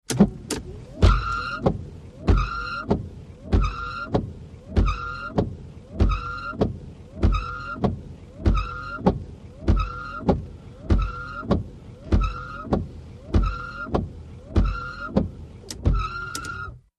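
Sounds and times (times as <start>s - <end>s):
Mitsubishi Montero windshield wipers squeaking, heard from the interior: 0.0s - 16.9s.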